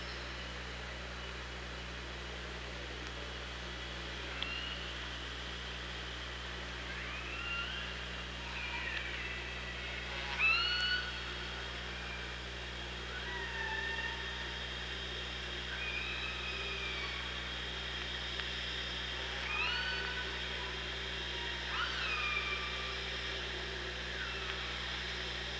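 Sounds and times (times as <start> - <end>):
underwater hiss and hum: 0.0 - 25.5
orca whistled calls: 6.9 - 9.6, 10.3 - 11.2, 15.7 - 17.3, 19.3 - 20.7, 21.3 - 23.2.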